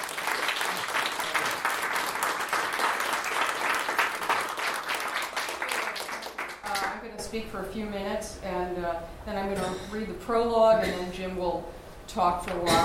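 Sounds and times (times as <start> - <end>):
audience clapping to welcome two speakers at an evening book talk: 0.0 - 7.0
speech: 7.3 - 12.8.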